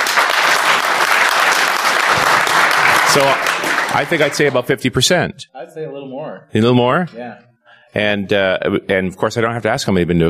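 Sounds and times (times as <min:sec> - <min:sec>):
audience clapping: 0:00.0 - 0:04.9
speech: 0:03.1 - 0:10.2.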